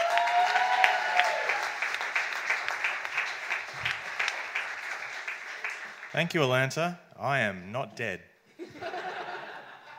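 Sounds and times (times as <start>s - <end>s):
audience applause at a science comedy debate show: 0.0s - 6.3s
speech: 6.2s - 8.3s
laughter: 8.5s - 9.9s.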